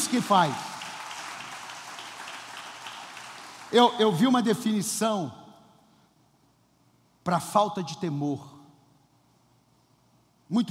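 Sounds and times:
audience applause: 0.0 - 3.8
speech: 0.1 - 0.7, 3.7 - 5.4, 7.2 - 8.6, 10.5 - 10.6.

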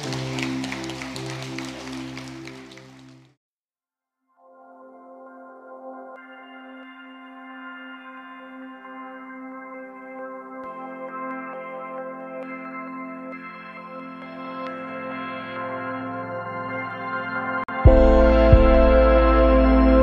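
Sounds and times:
sustained keyboard chords: 0.0 - 3.2, 4.5 - 20.0
crowd clapping: 0.0 - 3.4
soft organ-like chords: 17.8 - 20.0.

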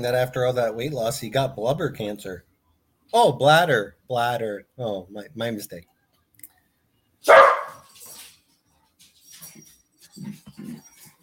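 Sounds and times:
speech: 0.0 - 2.5, 3.1 - 5.9, 7.2 - 7.4, 10.2 - 10.8
dog barking: 7.3 - 7.9.

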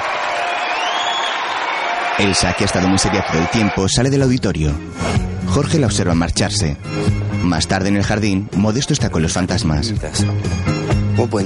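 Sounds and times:
faint whoops and cheers: 0.0 - 4.0
large audience applauding in an indoor hall: 0.0 - 4.2
speech: 2.2 - 11.4.

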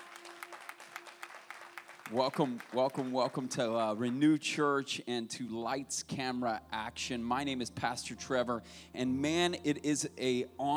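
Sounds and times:
audience applause: 0.0 - 4.4
speech: 2.1 - 10.7.

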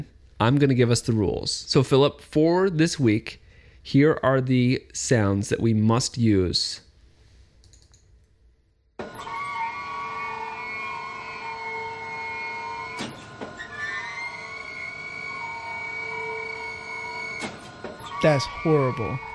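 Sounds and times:
speech: 0.0 - 6.8, 18.2 - 19.3
hydraulic car crusher crushing car: 9.0 - 19.3.

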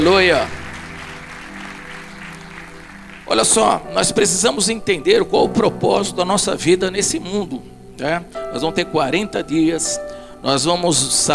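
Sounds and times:
audience applause: 0.0 - 3.9
speech: 0.1 - 0.6, 3.3 - 11.3.

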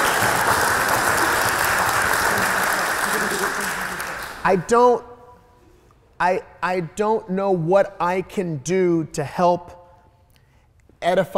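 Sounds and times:
audience applause: 0.0 - 4.5
speech: 4.4 - 5.1, 6.2 - 9.8, 11.0 - 11.3.

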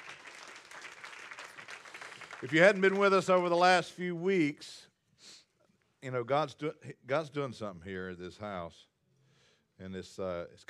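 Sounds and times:
applause: 0.0 - 3.9
speech: 2.4 - 5.4, 6.0 - 8.9, 9.8 - 10.6.

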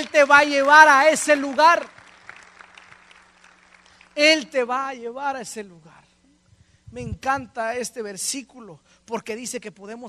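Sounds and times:
applause: 0.0 - 4.4
speech: 0.2 - 2.0, 4.2 - 6.0, 6.9 - 10.0.

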